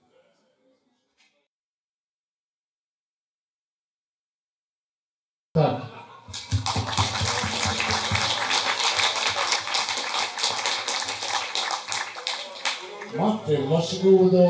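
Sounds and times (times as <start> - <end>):
speech: 5.6 - 6.5, 13.2 - 14.4
group applause: 6.3 - 13.6.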